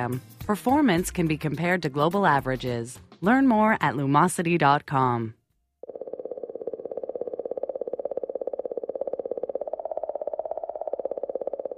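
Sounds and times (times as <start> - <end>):
speech: 0.0 - 5.4
mysterious clicking from Comet 67P: 5.8 - 11.7.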